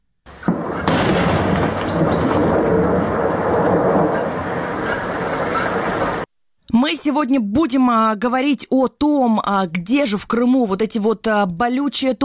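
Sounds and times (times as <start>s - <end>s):
quarry blast explosion in Crimea: 0.5s - 6.2s
speech: 6.9s - 12.2s.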